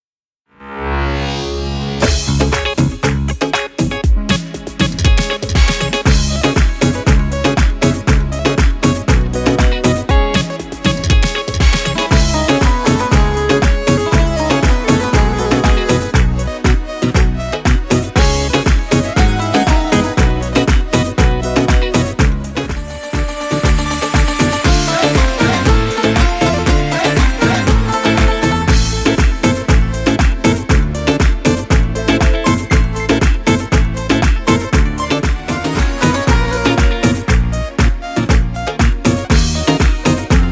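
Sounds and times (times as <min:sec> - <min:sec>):
Afghan music: 0:00.5 - 0:40.4.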